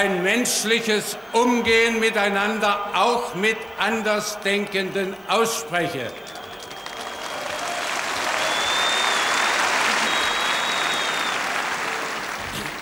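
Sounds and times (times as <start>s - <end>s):
speech: 0.0s - 6.4s
applause from a large audience: 6.0s - 12.8s.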